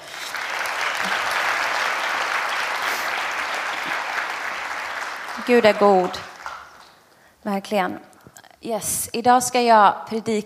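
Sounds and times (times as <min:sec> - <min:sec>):
audience applause: 0:00.0 - 0:07.0
speech: 0:05.5 - 0:06.3, 0:07.4 - 0:10.4.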